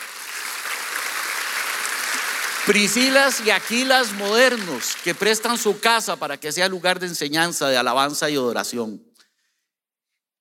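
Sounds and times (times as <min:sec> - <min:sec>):
audience applause: 0:00.0 - 0:06.1
speech: 0:02.7 - 0:09.2.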